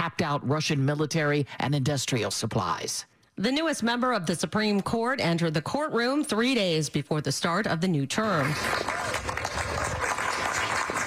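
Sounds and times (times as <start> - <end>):
speech: 0.0 - 9.6
courtroom round of applause: 8.4 - 11.0.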